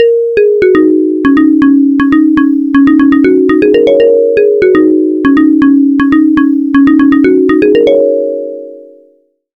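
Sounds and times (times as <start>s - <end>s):
plucked note: 0.0s - 8.6s.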